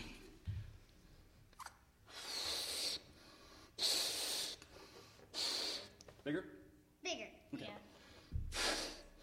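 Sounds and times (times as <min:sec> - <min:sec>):
inflating a balloon by mouth: 0:01.6 - 0:03.1, 0:03.8 - 0:04.6, 0:05.3 - 0:05.9, 0:08.5 - 0:09.1
inhalations: 0:02.1 - 0:06.0, 0:07.9 - 0:09.2
speech: 0:06.3 - 0:07.9.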